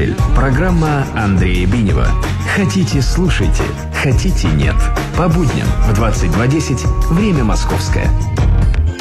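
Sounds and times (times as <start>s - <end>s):
blues music: 0.1s - 8.9s.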